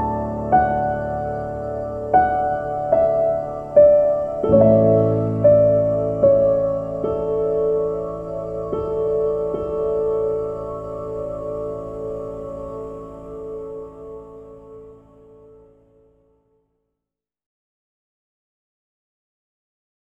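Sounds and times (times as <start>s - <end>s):
piano interlude: 0.0s - 16.0s.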